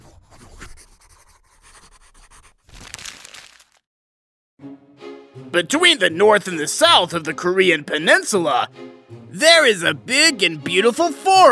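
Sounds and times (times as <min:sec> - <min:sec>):
pen scratching on paper writing invitations: 0:00.5 - 0:02.7
speech: 0:05.5 - 0:11.5.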